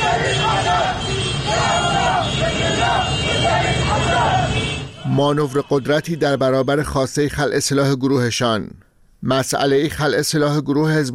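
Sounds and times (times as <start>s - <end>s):
motorcyclists chanting slogans in street: 0.0s - 5.2s
speech: 5.2s - 11.1s.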